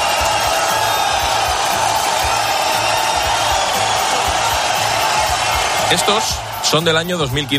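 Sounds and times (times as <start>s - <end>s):
crowd whistling and booing: 0.0s - 7.5s
speech: 5.9s - 7.5s.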